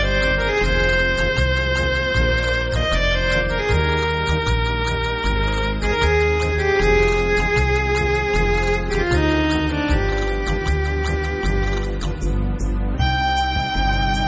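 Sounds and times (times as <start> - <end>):
synthesizer playing tango music: 0.0 - 14.2.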